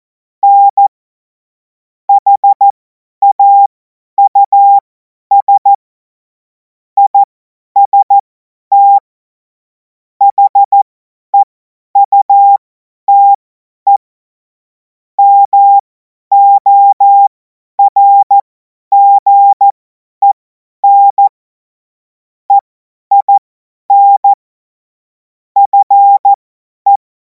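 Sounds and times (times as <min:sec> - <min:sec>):
CW Morse code beeps: 0:00.4 - 0:00.9, 0:02.2 - 0:02.6, 0:03.2 - 0:05.7, 0:07.0 - 0:09.0, 0:10.2 - 0:10.8, 0:11.4 - 0:14.0, 0:15.2 - 0:21.3, 0:22.5 - 0:24.4, 0:25.6 - 0:27.0.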